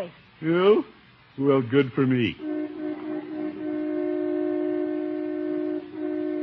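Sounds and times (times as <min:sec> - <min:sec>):
speech: 0:00.0 - 0:02.5
car horn honking: 0:02.4 - 0:06.4.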